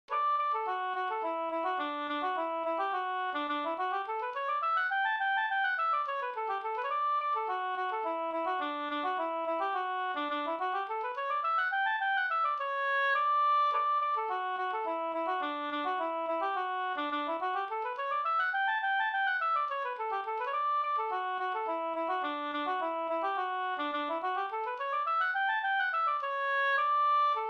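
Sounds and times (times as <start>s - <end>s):
slängpolska folk dance tune: 0.1s - 27.4s.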